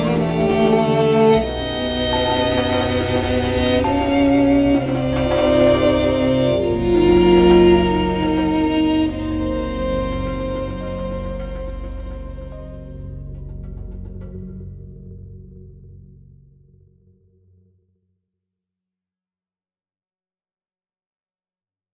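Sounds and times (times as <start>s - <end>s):
remix track: 0.0s - 12.0s.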